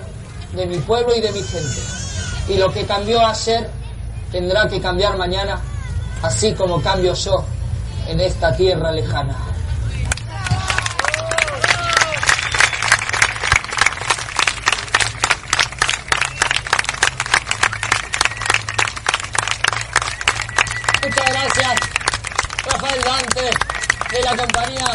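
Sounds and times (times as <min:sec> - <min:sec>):
speech: 0:00.5 - 0:09.5, 0:22.7 - 0:24.9
audience applause after a song: 0:10.4 - 0:24.9.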